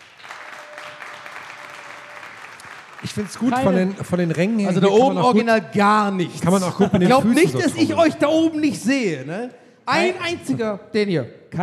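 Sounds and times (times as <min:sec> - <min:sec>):
audience applause cast as a vote at a live show: 0:00.0 - 0:05.2
speech: 0:03.0 - 0:11.6
laughter: 0:03.1 - 0:05.7, 0:06.3 - 0:09.1.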